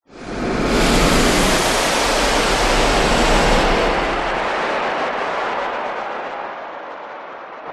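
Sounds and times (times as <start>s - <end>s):
whoosh: 0.1s - 6.3s.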